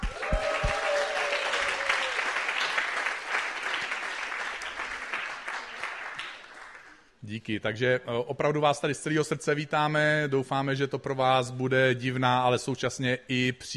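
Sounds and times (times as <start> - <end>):
audience applause: 0.0 - 7.0
speech: 7.4 - 13.7.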